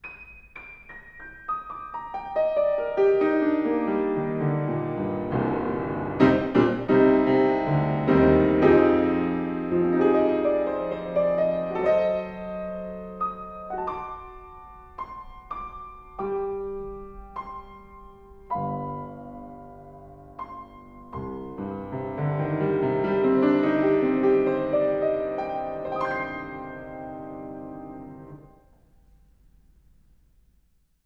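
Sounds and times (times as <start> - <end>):
piano: 0.0 - 30.8.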